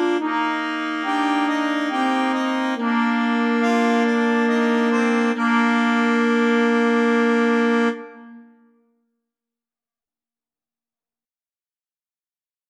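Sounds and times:
slow musette: 0.0 - 8.8.

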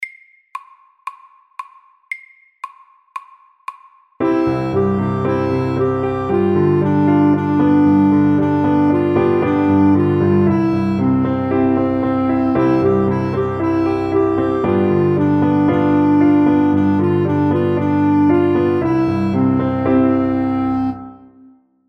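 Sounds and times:
fast Welsh melody: 4.2 - 21.3.

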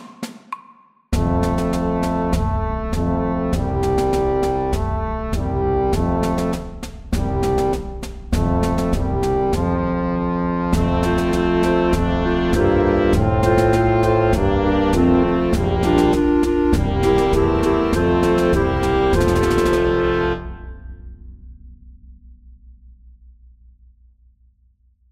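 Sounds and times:
march music: 1.2 - 20.8.

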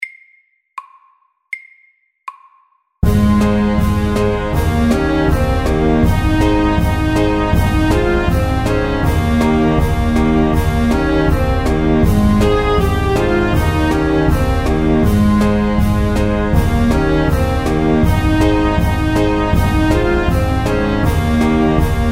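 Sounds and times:
cancan music: 3.0 - 22.1.

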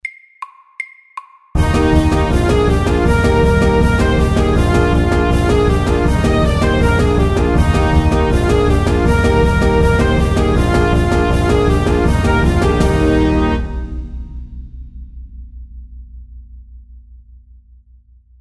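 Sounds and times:
fast cancan music at 160 BPM: 0.0 - 14.0.

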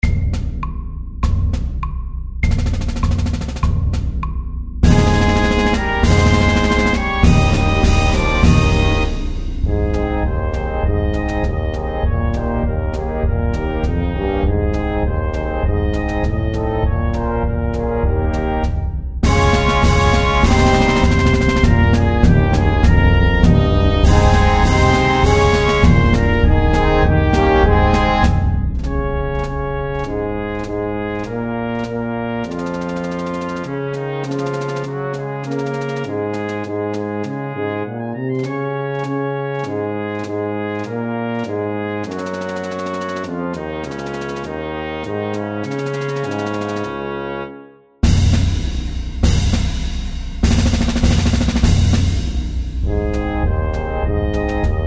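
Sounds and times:
march music at 100: 0.0 - 47.4, 48.0 - 54.8.

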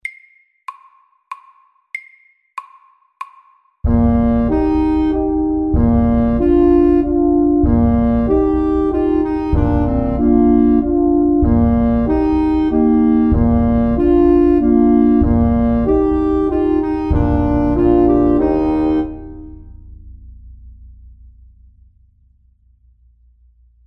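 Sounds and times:
elegant slow waltz: 4.0 - 19.4.

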